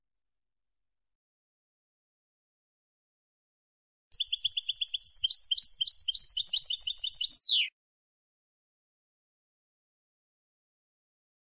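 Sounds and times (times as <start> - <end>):
European goldfinch song: 4.1 - 7.8.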